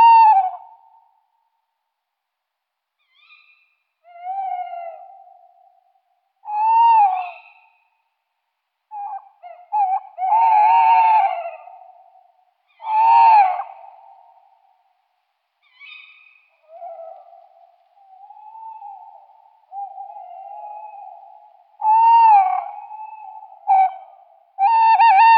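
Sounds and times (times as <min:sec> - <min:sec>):
tawny owl hooting in Luxembourg: 0:00.0 - 0:00.8, 0:03.0 - 0:05.7, 0:06.4 - 0:07.8, 0:08.9 - 0:14.4, 0:15.6 - 0:25.3.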